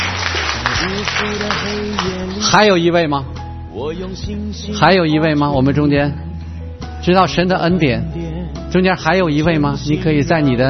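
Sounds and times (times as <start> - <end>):
congregation applauding at a church service: 0.0 - 2.6
speech: 0.8 - 6.3, 7.0 - 10.6.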